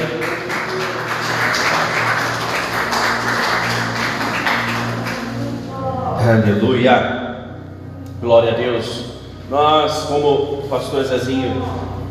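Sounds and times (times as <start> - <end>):
audience applauding: 0.0 - 5.7
speech: 6.3 - 7.2, 8.2 - 12.0.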